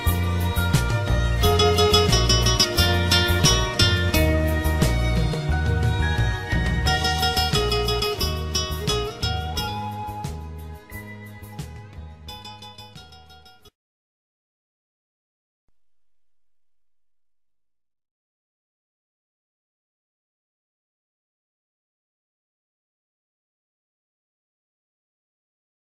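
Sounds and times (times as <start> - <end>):
romantic song instrumental: 0.0 - 13.7.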